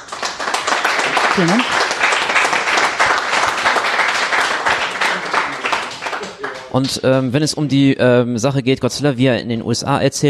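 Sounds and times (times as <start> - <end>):
audience applause: 0.0 - 7.2
speech: 1.4 - 1.8, 6.8 - 10.2.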